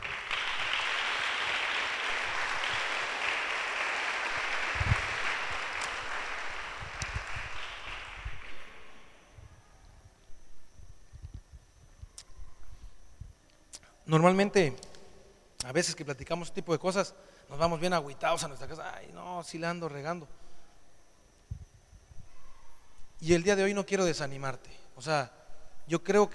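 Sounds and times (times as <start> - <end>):
audience applause: 0.0 - 9.1
speech: 14.1 - 14.9, 15.7 - 20.5, 23.2 - 26.3.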